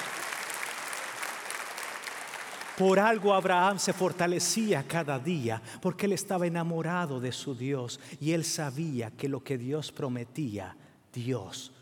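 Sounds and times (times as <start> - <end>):
church congregation applauding during a New Year service: 0.0 - 4.8
speech: 2.8 - 11.8.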